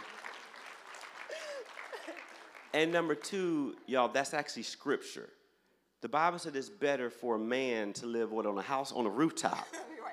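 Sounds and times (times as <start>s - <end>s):
audience clapping and cheering: 0.0s - 4.0s
speech: 2.1s - 5.4s, 6.0s - 9.8s.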